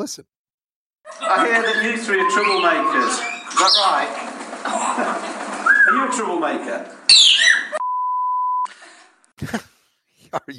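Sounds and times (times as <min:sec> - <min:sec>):
speech: 0:00.0 - 0:00.4, 0:01.2 - 0:05.1, 0:05.9 - 0:07.4, 0:09.4 - 0:09.7, 0:10.3 - 0:10.5
censor bleep over parrot's words: 0:07.8 - 0:08.7.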